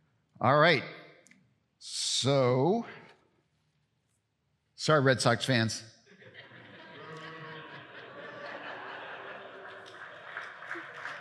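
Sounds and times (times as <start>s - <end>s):
speech: 0.4s - 1.0s, 1.8s - 3.0s, 4.8s - 6.0s
crowd chuckling and murmuring: 6.1s - 11.2s
audience clapping: 7.0s - 11.2s.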